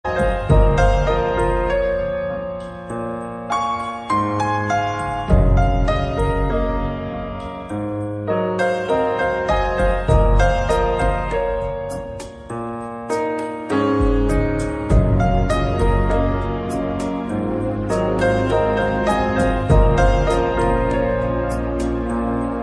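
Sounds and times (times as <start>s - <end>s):
peaceful music: 0.0s - 22.6s.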